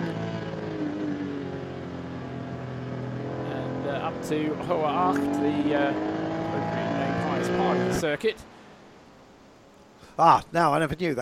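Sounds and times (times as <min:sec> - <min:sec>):
race car engine accelerating uphill on the Nürburgring during ADAC Ruhr-Pokal race: 0:00.0 - 0:08.1
speech: 0:04.1 - 0:08.5, 0:10.2 - 0:11.2.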